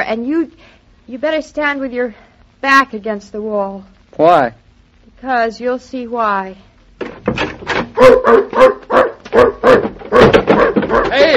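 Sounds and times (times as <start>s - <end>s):
speech: 0.1s - 4.6s, 5.2s - 6.7s, 8.0s - 9.9s
large dog barking: 8.0s - 11.3s.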